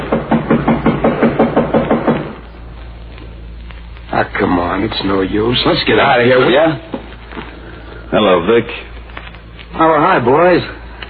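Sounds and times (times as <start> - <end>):
firm knocking on a door: 0.0 - 2.4
speech: 4.2 - 7.0, 8.1 - 8.9, 9.8 - 10.8.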